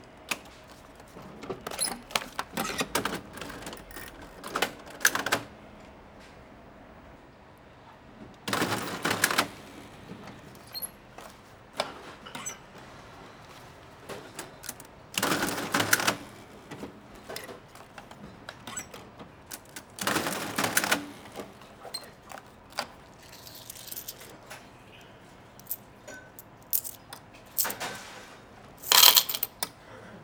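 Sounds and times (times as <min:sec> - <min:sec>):
manual cash register in a bar: 0:00.3 - 0:05.6, 0:08.5 - 0:09.9, 0:13.5 - 0:24.3, 0:26.4 - 0:28.2, 0:28.8 - 0:29.7.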